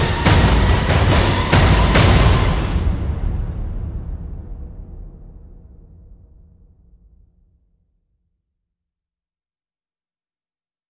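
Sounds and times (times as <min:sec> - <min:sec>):
percussion: 0:00.0 - 0:07.3.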